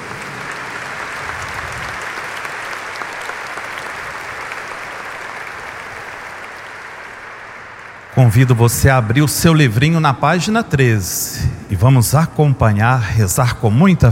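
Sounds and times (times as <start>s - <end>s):
audience applause: 0.0s - 10.5s
speech: 8.2s - 14.1s.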